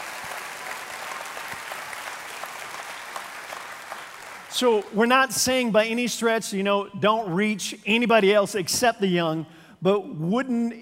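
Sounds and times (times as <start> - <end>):
audience applause: 0.0 - 5.0
speech: 4.6 - 10.8.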